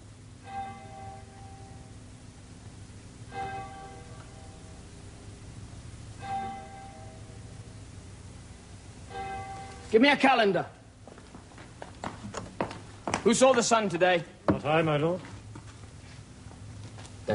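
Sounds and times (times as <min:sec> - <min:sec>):
clock bell striking: 0:00.4 - 0:01.9, 0:03.3 - 0:04.8, 0:06.1 - 0:07.7, 0:09.1 - 0:10.0
speech: 0:09.9 - 0:10.8, 0:13.2 - 0:15.3.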